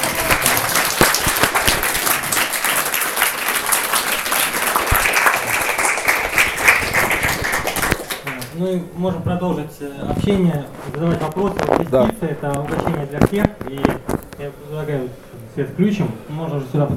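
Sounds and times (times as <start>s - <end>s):
audience applause for the speaker: 0.0s - 8.5s
speech: 8.7s - 16.9s.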